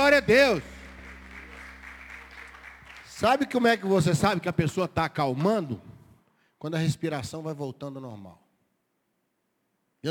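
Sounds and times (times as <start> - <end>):
audience applauding: 0.0 - 4.2
speech: 0.2 - 0.8, 3.2 - 5.9, 6.6 - 8.4.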